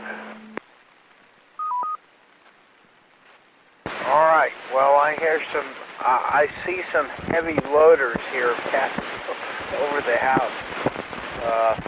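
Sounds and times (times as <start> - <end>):
radio hiss: 0.0 - 0.6, 3.2 - 11.8
DTMF touch-tone signals over a ham radio repeater: 1.6 - 2.1
speech: 4.7 - 9.0, 9.7 - 10.8, 11.4 - 11.8.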